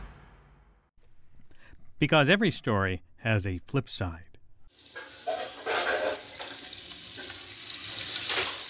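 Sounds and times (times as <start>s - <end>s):
speech: 2.0s - 4.3s
lionfish frying in a pan at a Caribbean-style restaurant in downtown Manhattan: 4.7s - 8.6s.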